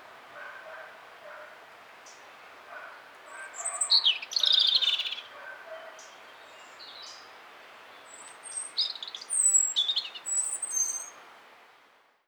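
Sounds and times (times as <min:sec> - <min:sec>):
European robin Erithacus rubecula singing: 0:03.3 - 0:07.2, 0:07.8 - 0:11.2.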